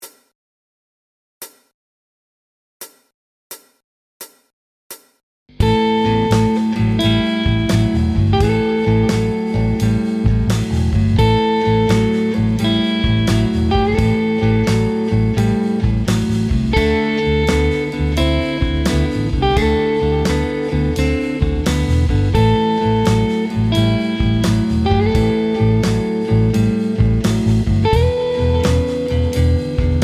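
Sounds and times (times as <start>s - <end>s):
slide blues guitar: 5.6s - 30.0s.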